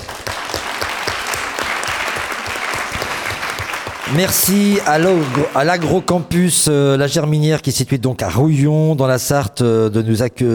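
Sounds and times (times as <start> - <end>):
audience applause: 0.0 - 6.3
speech: 4.1 - 10.5.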